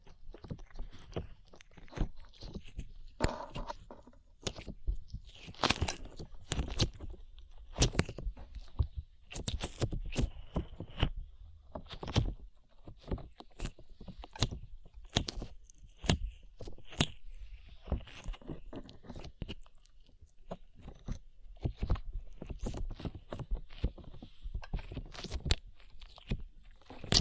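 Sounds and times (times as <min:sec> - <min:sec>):
sticky slime squished and pulled: 0:00.6 - 0:11.0, 0:12.9 - 0:17.2, 0:20.4 - 0:27.2.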